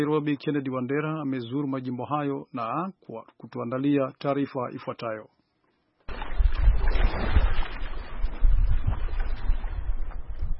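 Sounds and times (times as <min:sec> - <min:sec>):
speech: 0:00.0 - 0:05.4
wind off the Lake Victoria shore at Dunga, Kisumu, buffeting the microphone: 0:06.1 - 0:10.5.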